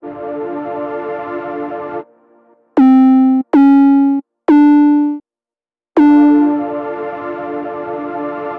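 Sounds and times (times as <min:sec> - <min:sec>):
person playing around on a keyboard: 0:02.8 - 0:05.2, 0:06.0 - 0:06.7.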